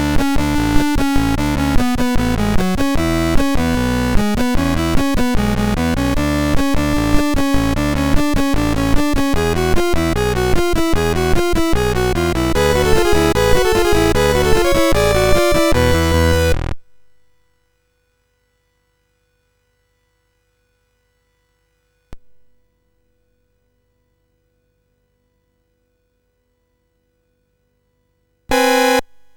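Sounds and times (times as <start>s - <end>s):
chiptune music on MOS6581R3 chip: 0.0s - 16.9s, 28.5s - 29.2s.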